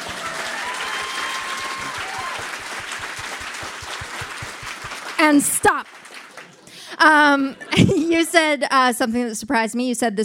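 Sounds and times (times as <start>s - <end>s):
audience applause: 0.0s - 7.0s
speech: 5.2s - 6.0s, 7.0s - 10.2s.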